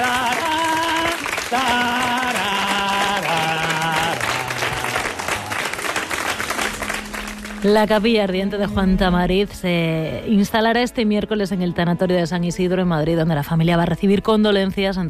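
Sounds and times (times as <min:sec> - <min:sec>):
crowd applause: 0:00.0 - 0:07.8
descending melodic tune: 0:02.3 - 0:11.9
speech: 0:07.6 - 0:15.0.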